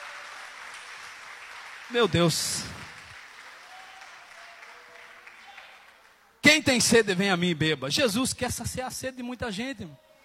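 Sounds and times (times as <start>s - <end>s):
audience applause: 0.0s - 6.2s
speech: 1.9s - 2.8s, 6.6s - 10.0s.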